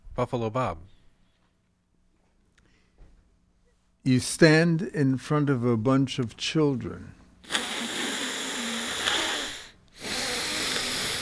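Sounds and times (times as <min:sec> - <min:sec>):
speech: 0:00.2 - 0:00.9, 0:04.0 - 0:07.6
heavy, unhealthy-sounding breathing through the air passage: 0:07.4 - 0:11.2.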